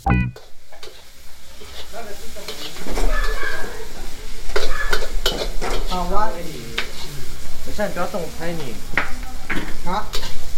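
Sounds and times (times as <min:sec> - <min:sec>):
rice cakes and cured pork sizzling in a wok: 0:00.1 - 0:10.5
wok of rice cakes and cured pork stirred and scraped: 0:00.4 - 0:06.1, 0:08.6 - 0:10.5.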